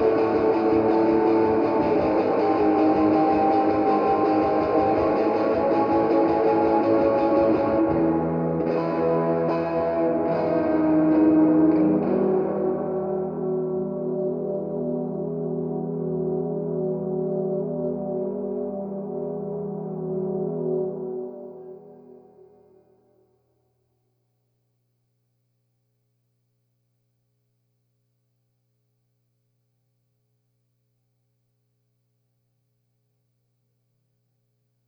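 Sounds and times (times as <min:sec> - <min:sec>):
guitar: 0:00.0 - 0:23.0.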